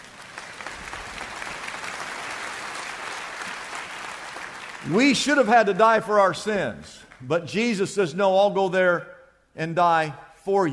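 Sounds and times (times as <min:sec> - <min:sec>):
audience clapping: 0:00.0 - 0:05.8, 0:07.0 - 0:07.3
speech: 0:04.8 - 0:10.7.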